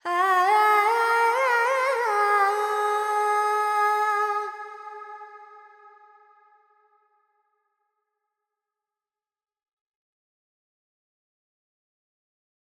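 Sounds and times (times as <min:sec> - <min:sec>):
Carnatic female vocal alaps in G pentatonic: 0:00.0 - 0:05.5.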